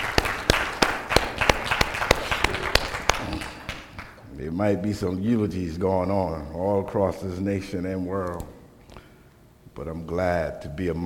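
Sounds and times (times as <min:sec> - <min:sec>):
audience hand clapping: 0:00.0 - 0:04.2
speech: 0:04.6 - 0:08.6, 0:09.8 - 0:11.0.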